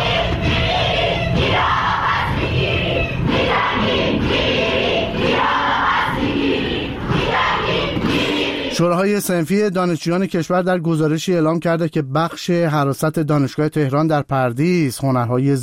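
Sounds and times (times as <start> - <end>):
student protest crowd chanting: 0.0 - 9.0
speech: 8.8 - 15.6.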